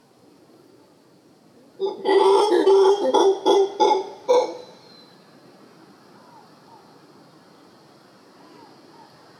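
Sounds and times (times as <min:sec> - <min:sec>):
single howler monkey howling in Costa Rica: 0:01.8 - 0:05.0.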